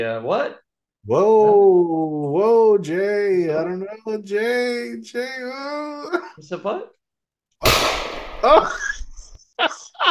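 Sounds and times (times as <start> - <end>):
speech: 0.0 - 7.0, 7.6 - 8.9
gunshot: 7.6 - 8.8
laughter: 8.4 - 10.0.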